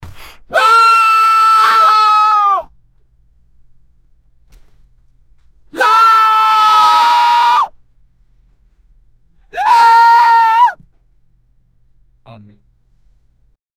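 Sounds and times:
person screaming in mild fear: 0:00.5 - 0:02.7, 0:05.8 - 0:07.7, 0:09.5 - 0:10.8.

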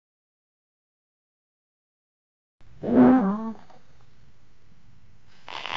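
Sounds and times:
person farting: 0:02.8 - 0:03.4.

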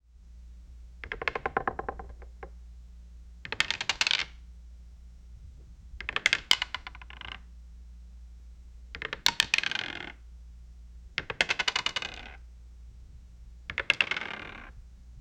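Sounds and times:
chess pieces moving on a chess board: 0:03.5 - 0:04.3, 0:06.0 - 0:07.4, 0:09.0 - 0:10.2, 0:11.2 - 0:12.4, 0:13.7 - 0:14.7.

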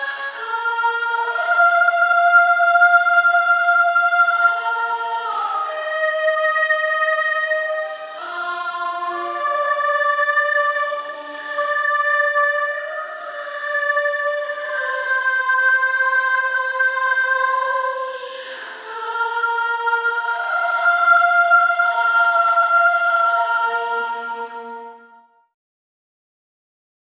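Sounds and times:
women's drama choir singing: 0:00.0 - 0:25.3.

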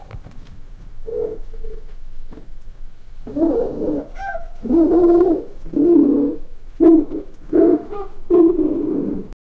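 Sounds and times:
elephant defecating: 0:00.0 - 0:09.4.

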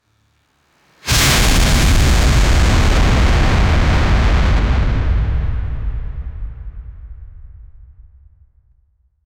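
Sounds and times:
dramatic anime shockwave: 0:01.1 - 0:08.3.

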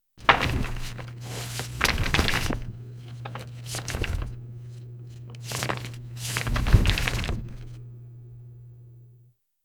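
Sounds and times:
library ambience: 0:00.2 - 0:08.2.

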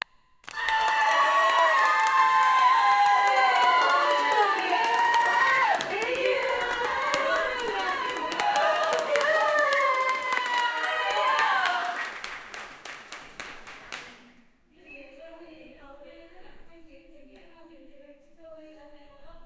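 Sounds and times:
36 women applauding in a small room: 0:00.4 - 0:14.2.

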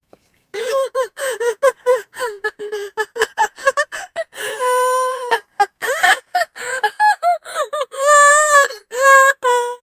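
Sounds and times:
person crying tearfully: 0:00.6 - 0:09.8.

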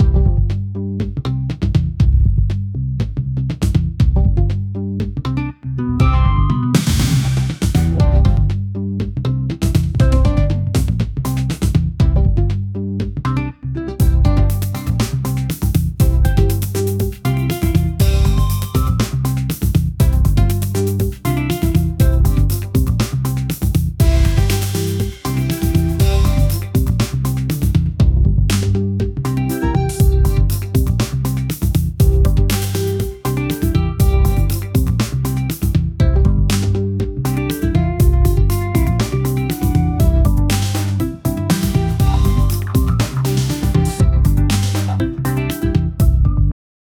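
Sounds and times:
upbeat funky uplifting music: 0:00.0 - 0:02.6, 0:03.5 - 0:46.5.

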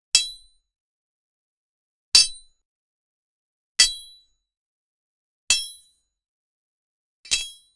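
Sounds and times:
light sword sound: 0:07.3 - 0:07.7.

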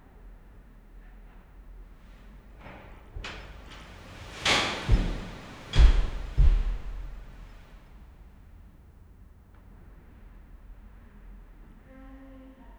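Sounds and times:
city room ambience: 0:02.6 - 0:07.8.

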